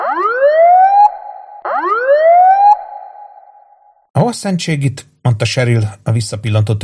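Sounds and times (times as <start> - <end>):
police car siren: 0.0 - 3.7
speech: 4.3 - 6.8.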